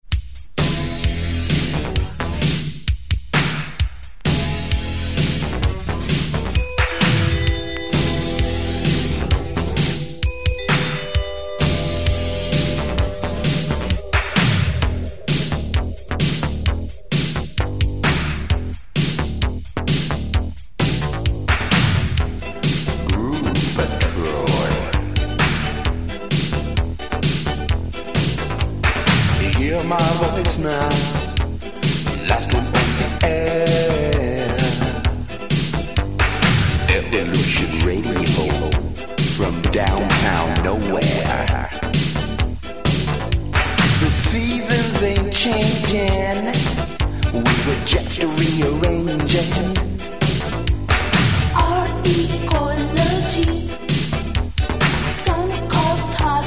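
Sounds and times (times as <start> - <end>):
groove music: 0.0 - 56.4.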